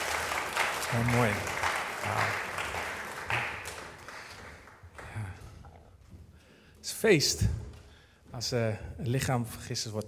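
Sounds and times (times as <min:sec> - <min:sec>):
crowd applauding: 0:00.0 - 0:05.6
speech: 0:00.9 - 0:02.5, 0:07.0 - 0:07.6, 0:08.4 - 0:10.0.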